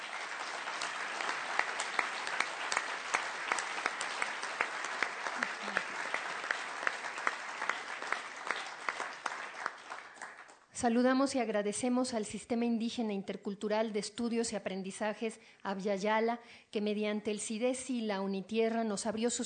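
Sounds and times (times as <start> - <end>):
audience applause: 0.0 - 10.6
speech: 10.8 - 19.4.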